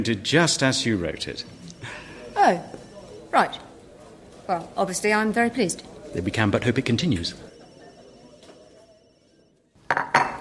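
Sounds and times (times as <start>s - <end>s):
speech: 0.0s - 3.7s, 4.5s - 7.5s
teacup and dishes clinking: 9.9s - 10.3s.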